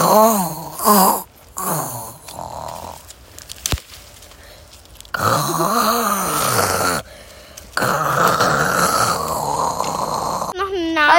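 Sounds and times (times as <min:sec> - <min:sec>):
wild boar grunting and moaning: 0:00.0 - 0:03.2, 0:05.1 - 0:10.6.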